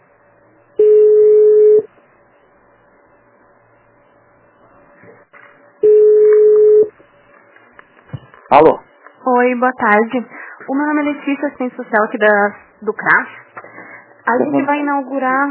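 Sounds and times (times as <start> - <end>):
telephone tones during a call transfer: 0.8 - 1.9, 5.8 - 7.0
speech: 8.5 - 13.4, 14.3 - 15.4.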